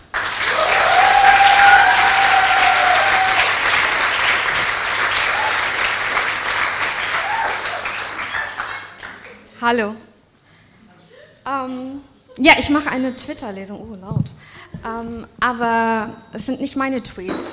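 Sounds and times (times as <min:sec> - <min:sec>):
audience applause: 0:00.0 - 0:09.5
speech: 0:09.6 - 0:10.1, 0:11.4 - 0:17.5.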